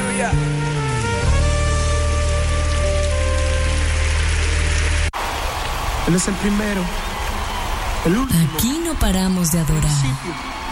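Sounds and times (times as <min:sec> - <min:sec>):
sustained keyboard or organ chords: 0:00.0 - 0:05.1
speech: 0:00.2 - 0:00.7, 0:06.1 - 0:07.1, 0:08.0 - 0:10.6
audience applause: 0:02.6 - 0:10.7.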